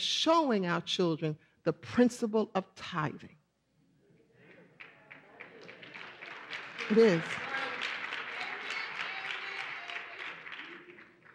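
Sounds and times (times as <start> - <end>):
speech: 0.0 - 3.4, 6.9 - 7.5
audience clapping: 4.4 - 11.3.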